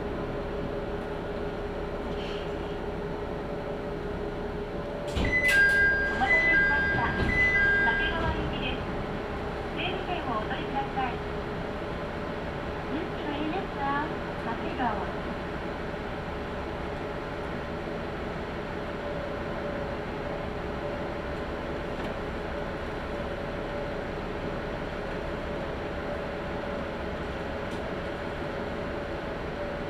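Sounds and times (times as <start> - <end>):
Tenryu Hamanako Railroad train engine drone and rumble: 0.0 - 29.8
high chime or squeal: 5.3 - 8.7.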